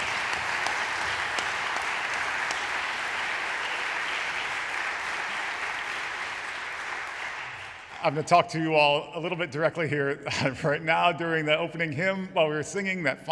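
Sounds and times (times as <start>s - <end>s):
audience applause: 0.0s - 8.3s
speech: 8.0s - 13.3s.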